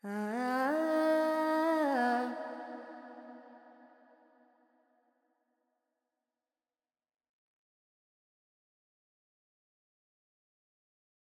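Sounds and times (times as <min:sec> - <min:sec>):
Carnatic woman singing alaps in Phrygian mode: 0:00.0 - 0:03.4.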